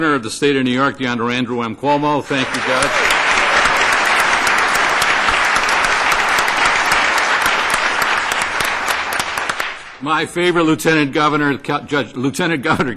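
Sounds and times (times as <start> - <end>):
speech: 0.0 - 3.4, 10.0 - 12.9
audience applause: 2.2 - 10.0.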